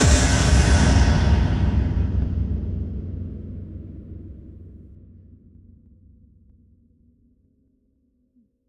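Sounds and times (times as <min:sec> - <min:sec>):
effect kick drum hits: 0:00.0 - 0:04.7.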